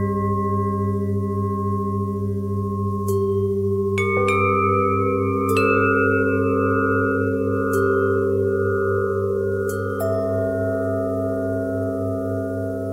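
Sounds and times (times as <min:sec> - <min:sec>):
bell harmonics: 0:00.0 - 0:12.9.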